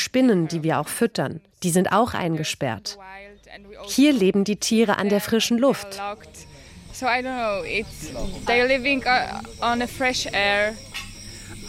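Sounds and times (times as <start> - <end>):
cicadas chirping in the evening: 0.0 - 11.6
speech: 0.1 - 11.1.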